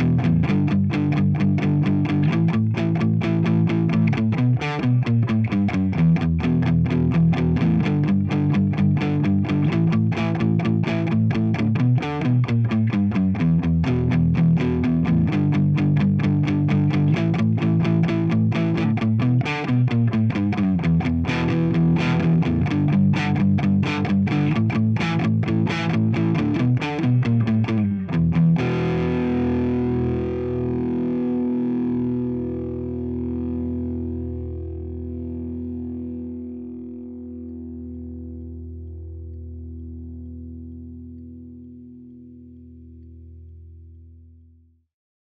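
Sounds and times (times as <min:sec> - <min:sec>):
rhythm guitar through a plexi amplifier: 0:00.0 - 0:34.6.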